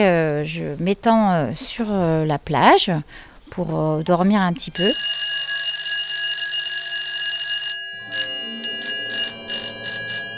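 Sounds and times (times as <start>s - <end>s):
speech: 0.0s - 5.2s
school bell ringing: 4.8s - 10.3s.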